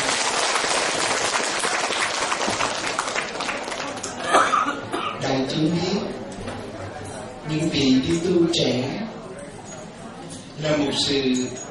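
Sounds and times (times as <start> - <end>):
audience applause: 0.0 - 4.2
speech: 5.4 - 6.2, 7.5 - 9.0, 10.6 - 11.6.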